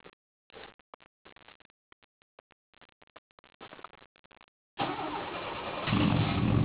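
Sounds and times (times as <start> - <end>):
car remote start: 4.8 - 6.5.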